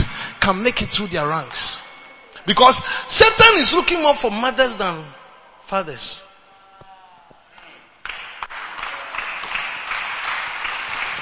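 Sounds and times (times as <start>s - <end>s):
speech: 0.5s - 1.8s, 2.4s - 6.3s
audience clapping: 7.6s - 11.2s.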